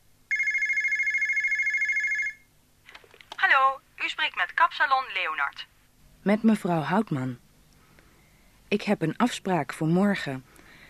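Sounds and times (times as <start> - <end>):
electronic telephone ringing for a call to a hairdresser's salon: 0.3 - 2.5
speech: 4.7 - 7.4, 8.7 - 10.5.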